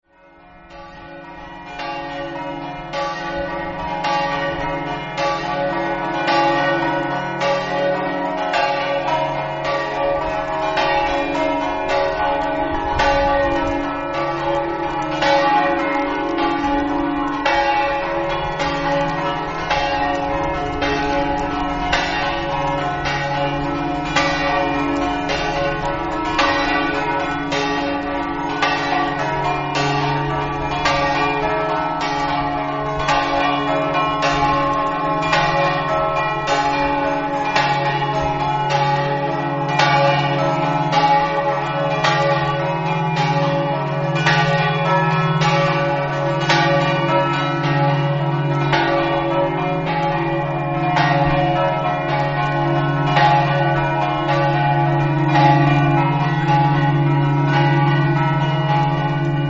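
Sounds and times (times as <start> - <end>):
bells ringing: 0.1 - 59.4.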